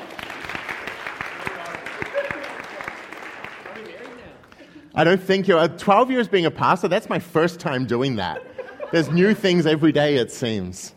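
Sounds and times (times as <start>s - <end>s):
audience clapping: 0.0s - 4.8s
speech: 5.0s - 10.9s
laughter: 8.1s - 9.9s.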